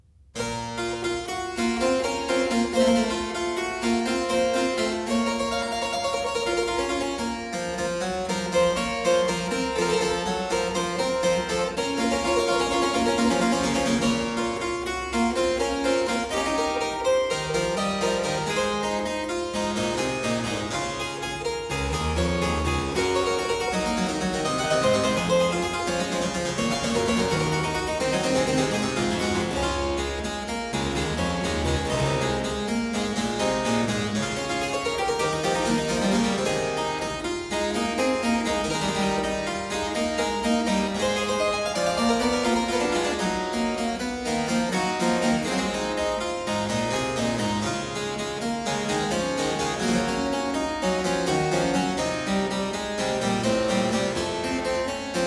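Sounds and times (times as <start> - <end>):
three-part keyboard invention in B minor: 0.4 - 55.2.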